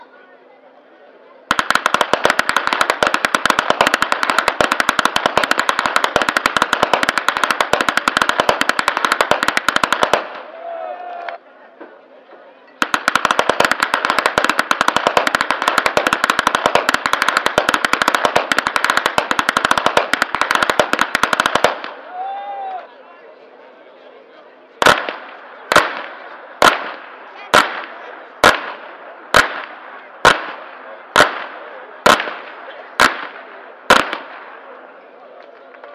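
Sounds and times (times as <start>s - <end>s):
whip cracking in Flachgau: 1.5s - 10.4s, 12.8s - 22.0s, 24.8s - 30.6s, 31.2s - 34.4s.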